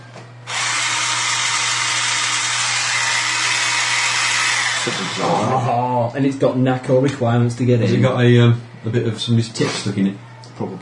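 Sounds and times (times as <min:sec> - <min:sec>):
electric pencil sharpener grinding: 0:00.5 - 0:05.6
speech: 0:04.8 - 0:10.8.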